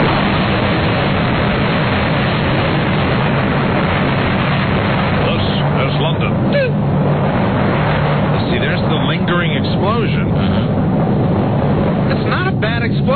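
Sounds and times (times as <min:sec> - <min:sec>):
nuclear explosion sound effect roar and rumble: 0:00.0 - 0:13.1
voices: 0:05.2 - 0:06.8, 0:08.3 - 0:10.8, 0:12.0 - 0:13.1.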